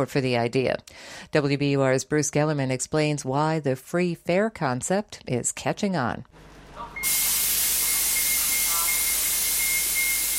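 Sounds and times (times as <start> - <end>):
speech: 0.0 - 7.3
faint high whine: 6.7 - 10.3
city bus pulling in with air hiss: 7.0 - 10.3.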